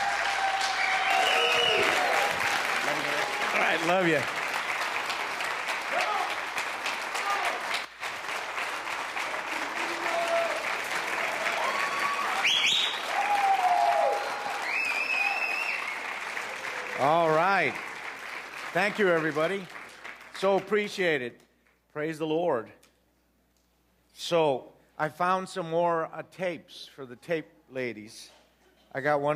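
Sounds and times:
audience applause and hand clapping: 0.0 - 20.8
speech: 3.8 - 4.4, 18.8 - 19.8, 20.4 - 21.4, 22.0 - 22.8, 24.2 - 29.3.

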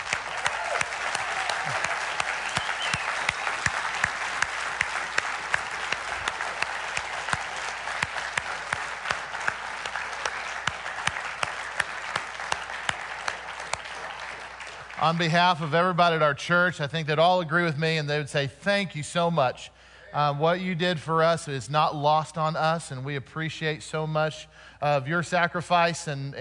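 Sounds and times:
people cheering: 0.0 - 15.6
people applauding: 0.0 - 16.2
speech: 15.0 - 26.4.

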